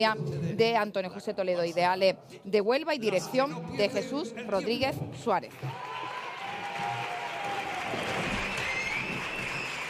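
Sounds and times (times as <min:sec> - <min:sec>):
speech: 0:00.0 - 0:06.1
theater audience applause: 0:05.7 - 0:09.8
faint whistles: 0:08.4 - 0:09.8.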